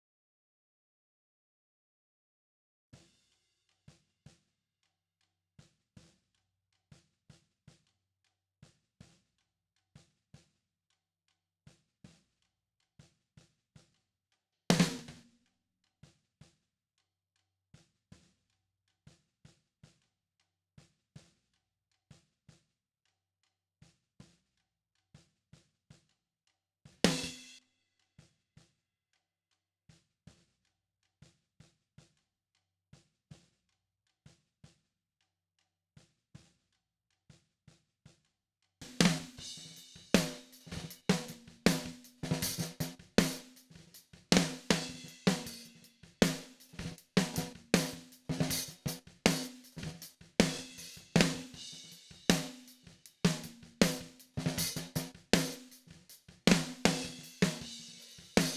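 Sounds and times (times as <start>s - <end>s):
snare drum: 14.7s - 15.3s, 27.1s - 27.6s, 38.8s - 58.5s.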